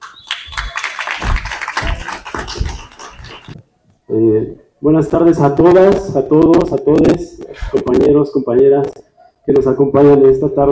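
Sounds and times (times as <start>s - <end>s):
audience applause: 0.0s - 3.6s
speech: 4.1s - 10.7s.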